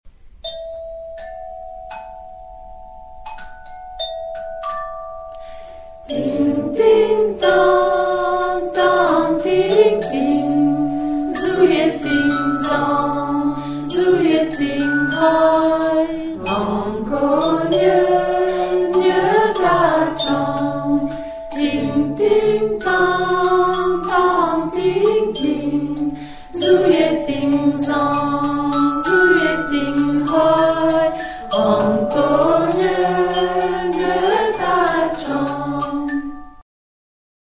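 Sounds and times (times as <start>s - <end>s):
voices chanting in unison: 6.1s - 36.0s.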